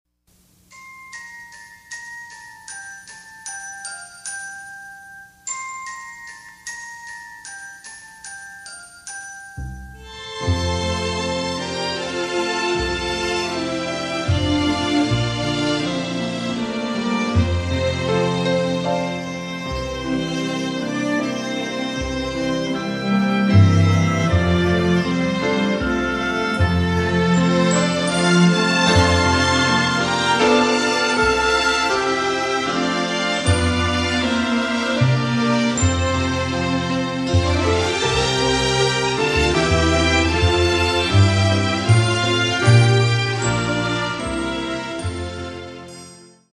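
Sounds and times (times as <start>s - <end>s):
orchestra playing Christmas medley: 9.9s - 46.4s.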